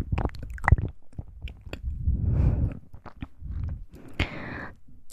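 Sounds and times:
wet mouth clicks: 0.0s - 2.0s, 2.7s - 4.3s.

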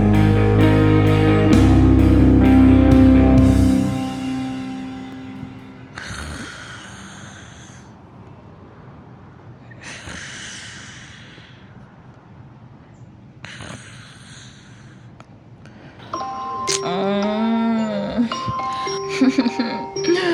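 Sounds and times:
alarm ringing: 0.0s - 6.3s, 16.1s - 20.3s.

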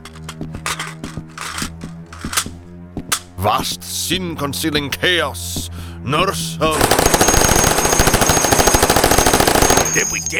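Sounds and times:
droning musical background: 0.0s - 10.3s
speech: 3.4s - 7.5s, 10.0s - 10.3s
rapid gunfire in an audio drama: 6.8s - 10.1s.

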